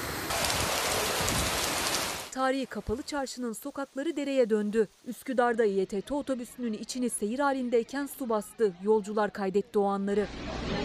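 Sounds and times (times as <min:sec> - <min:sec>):
heavy rain: 0:00.0 - 0:05.3
speech: 0:02.4 - 0:10.6.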